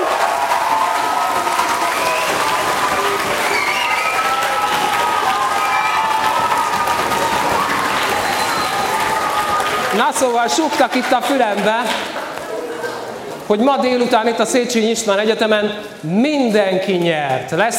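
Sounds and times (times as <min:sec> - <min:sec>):
faint cheering: 0:00.0 - 0:11.0
audience applause: 0:00.0 - 0:13.5
speech: 0:10.0 - 0:12.1, 0:13.5 - 0:17.7.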